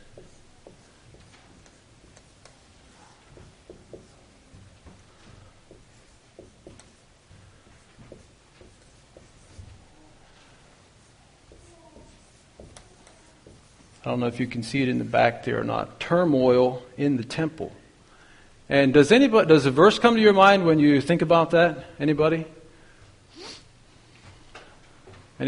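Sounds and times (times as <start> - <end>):
writing the title on a board: 0.0 - 14.1
speech: 14.0 - 17.8, 18.7 - 22.6.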